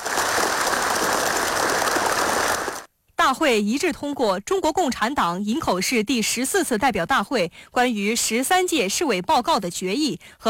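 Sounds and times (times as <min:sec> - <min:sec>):
warm applause in a meeting hall: 0:00.0 - 0:02.9
speech: 0:03.3 - 0:10.4.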